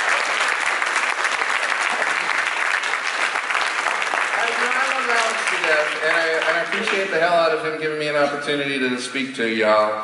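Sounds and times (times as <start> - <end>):
audience applause: 0.0 - 7.6
speech: 5.7 - 10.0.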